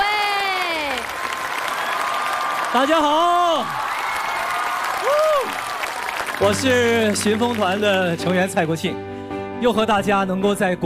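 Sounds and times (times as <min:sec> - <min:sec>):
studio audience applause welcoming two guests onto a variety show stage: 0:00.0 - 0:08.6
speech: 0:02.7 - 0:03.9, 0:06.4 - 0:10.8
short tonal whoop: 0:03.8 - 0:05.7.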